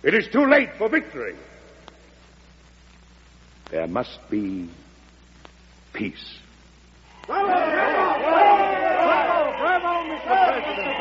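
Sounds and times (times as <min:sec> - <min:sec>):
speech: 0:00.0 - 0:01.5, 0:03.7 - 0:04.8, 0:06.0 - 0:06.4, 0:07.3 - 0:08.4
crowd cheering after a speech: 0:07.1 - 0:10.9.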